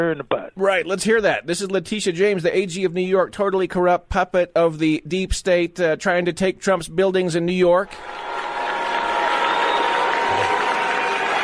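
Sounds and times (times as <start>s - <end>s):
speech: 0.0s - 8.4s
crowd booing at an event: 8.0s - 11.4s.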